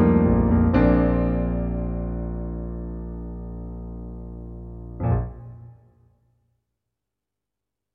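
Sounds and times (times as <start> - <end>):
concert piano: 0.0 - 6.1.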